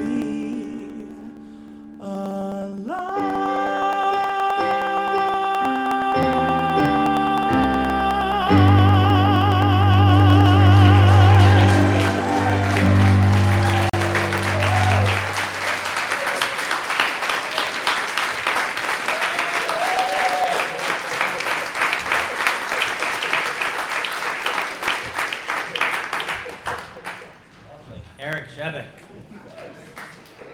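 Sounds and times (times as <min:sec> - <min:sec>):
person singing: 0:00.0 - 0:15.9
audience applause: 0:04.2 - 0:27.4.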